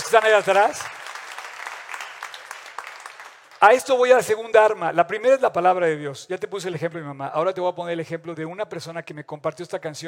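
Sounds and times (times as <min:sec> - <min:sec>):
audience applause: 0:00.0 - 0:03.9
speech: 0:00.1 - 0:01.0, 0:03.6 - 0:10.0.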